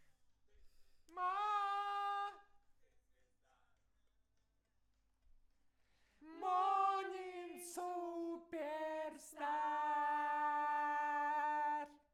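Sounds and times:
vocals: 0:00.6 - 0:03.5, 0:06.0 - 0:12.1.

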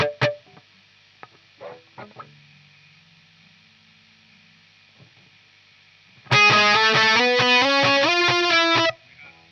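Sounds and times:
guitar: 0:00.0 - 0:03.2, 0:06.2 - 0:09.5.

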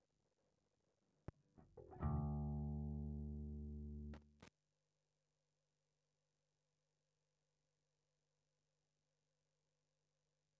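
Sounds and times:
bass guitar recorded by direct input: 0:01.6 - 0:04.5.

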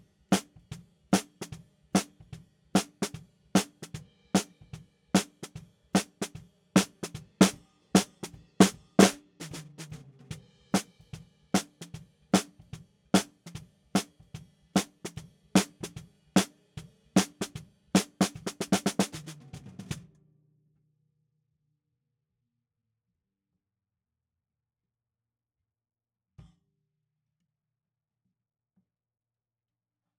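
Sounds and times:
snare drum: 0:00.0 - 0:16.6, 0:17.2 - 0:20.0.

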